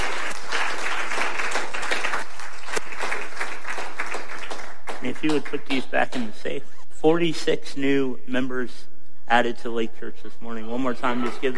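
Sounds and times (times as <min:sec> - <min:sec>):
audience applauding with loud hand claps: 0:00.0 - 0:06.4, 0:11.1 - 0:11.5
speech: 0:05.1 - 0:11.5.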